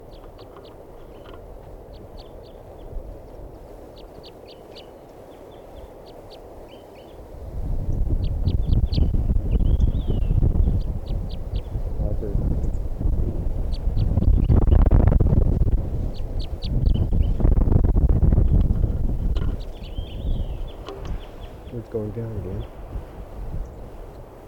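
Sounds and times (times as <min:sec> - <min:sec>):
wild bird calling near the net: 0:00.0 - 0:07.2, 0:07.9 - 0:11.8, 0:12.6 - 0:12.9, 0:13.5 - 0:15.0, 0:16.1 - 0:17.5, 0:19.3 - 0:22.8
rumbling wind noise: 0:00.0 - 0:24.4.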